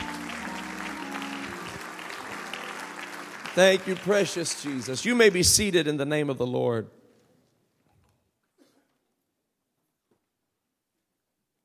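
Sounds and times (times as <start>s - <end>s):
crowd clapping: 0.0s - 6.0s
speech: 3.6s - 7.0s.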